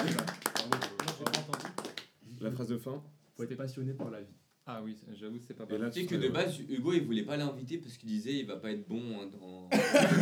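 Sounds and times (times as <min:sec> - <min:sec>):
clapping: 0:00.0 - 0:02.1
speech: 0:02.4 - 0:10.2
laughter: 0:09.8 - 0:10.2.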